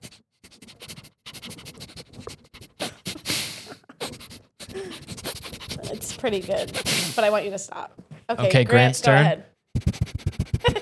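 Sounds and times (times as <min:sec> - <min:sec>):
person imitating a dog sniffing an ear: 0:00.0 - 0:07.6, 0:09.8 - 0:10.7
speech: 0:05.9 - 0:09.5.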